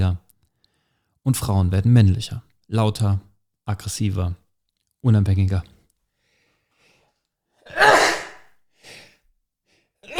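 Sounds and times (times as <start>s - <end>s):
speech: 1.2s - 4.4s, 5.0s - 5.7s
loud breathy sneeze: 7.7s - 9.1s.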